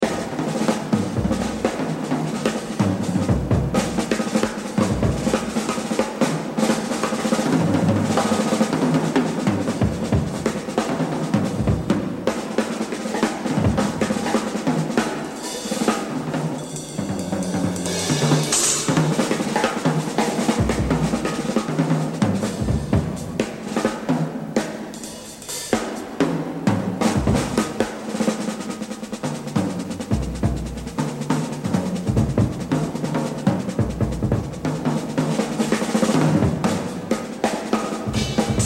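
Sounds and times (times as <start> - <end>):
jazz drumming: 0.0 - 38.6.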